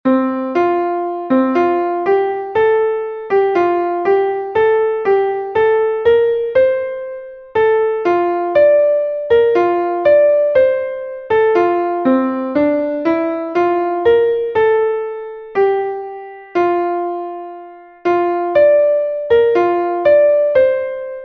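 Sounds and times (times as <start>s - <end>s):
piano: 0.0s - 21.2s.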